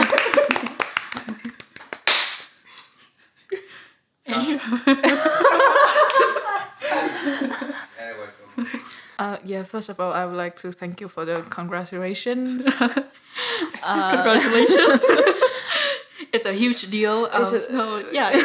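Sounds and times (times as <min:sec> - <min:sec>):
people chuckling and laughing: 0:00.0 - 0:01.7, 0:04.3 - 0:08.9, 0:12.6 - 0:16.0
rapid clapping: 0:00.0 - 0:02.5
speech: 0:04.5 - 0:05.2, 0:09.2 - 0:15.6, 0:16.4 - 0:18.4.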